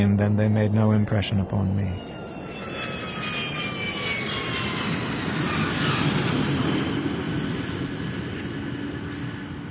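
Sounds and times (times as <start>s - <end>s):
speech: 0.0s - 2.7s
airplane jet engine roar: 0.0s - 9.6s.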